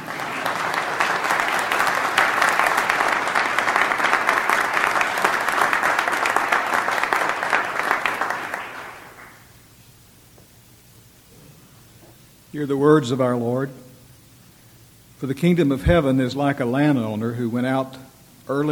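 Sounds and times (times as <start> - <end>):
audience applause: 0.0 - 9.4
speech: 12.6 - 13.8, 15.2 - 18.6.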